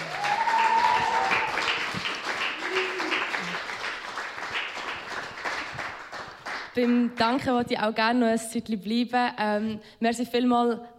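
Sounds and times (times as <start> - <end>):
cheers: 0.0 - 3.8
audience applause after live trio performance: 0.0 - 6.8
speech: 6.8 - 10.9.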